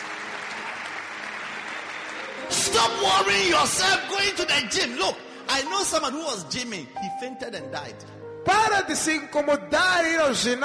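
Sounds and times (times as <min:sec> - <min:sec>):
congregation clapping for the Lord: 0:00.0 - 0:05.0
speech: 0:02.5 - 0:10.6.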